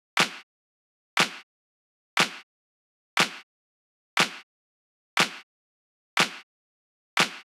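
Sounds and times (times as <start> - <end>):
clap: 0.2 - 0.4, 1.2 - 1.4, 2.2 - 2.4, 3.2 - 3.4, 4.2 - 4.4, 5.2 - 5.4, 6.2 - 6.4, 7.2 - 7.5.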